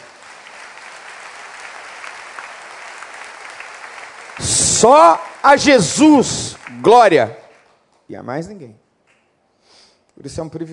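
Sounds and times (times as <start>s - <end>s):
audience applause: 0.0s - 7.7s
speech: 4.4s - 7.4s, 8.1s - 8.8s, 10.2s - 10.7s.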